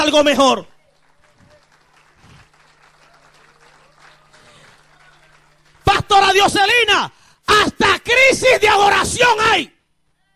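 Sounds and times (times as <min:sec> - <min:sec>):
speech: 0:00.0 - 0:00.7, 0:06.1 - 0:09.7
audience applause: 0:00.8 - 0:06.2.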